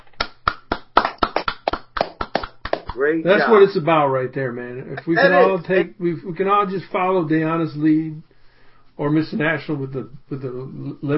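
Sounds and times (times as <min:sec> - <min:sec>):
scattered hand clapping: 0:00.0 - 0:03.0
speech: 0:03.0 - 0:08.3, 0:09.0 - 0:11.1.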